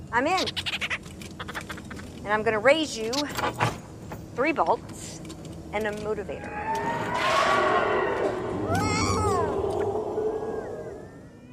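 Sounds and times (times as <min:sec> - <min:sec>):
speech: 0:00.1 - 0:00.8, 0:02.2 - 0:03.8, 0:04.4 - 0:04.9, 0:05.7 - 0:07.7
small alien baby creature's scream: 0:06.4 - 0:11.5.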